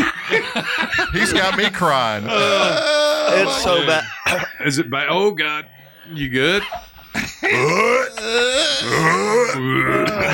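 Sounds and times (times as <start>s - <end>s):
laughter: 0.0s - 4.6s
speech: 0.3s - 10.3s
person gagging from the burning heat of very spicy food: 2.2s - 4.4s, 7.2s - 10.3s.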